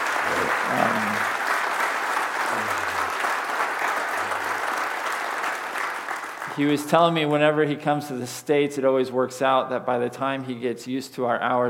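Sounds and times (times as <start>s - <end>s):
audience applause: 0.0s - 7.6s
speech: 6.6s - 11.6s.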